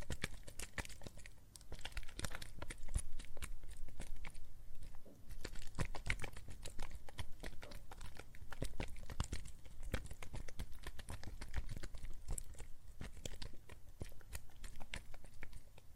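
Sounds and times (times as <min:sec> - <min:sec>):
soap foam crackling and popping: 0:00.0 - 0:15.9.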